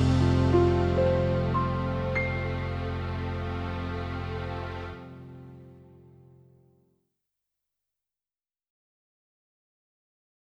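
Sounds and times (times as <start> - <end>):
instrumental music: 0.0 - 6.5.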